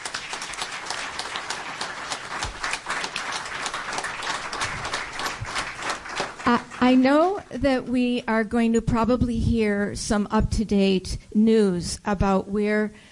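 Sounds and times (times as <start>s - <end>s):
audience applause: 0.0s - 7.4s
speech: 6.5s - 13.1s.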